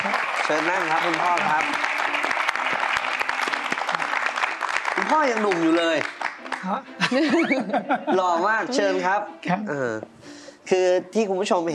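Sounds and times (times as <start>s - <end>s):
studio audience applause welcoming a guest on a talk show: 0.0s - 7.4s
speech: 0.5s - 1.9s, 5.0s - 11.7s
laughter: 7.0s - 9.2s.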